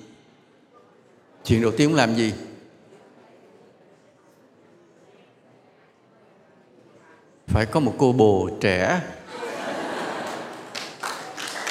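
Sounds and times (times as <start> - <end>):
speech: 1.5 - 2.5, 7.6 - 9.4
laughter: 9.3 - 10.9
audience clapping during a Buddhist dharma talk: 10.0 - 11.6.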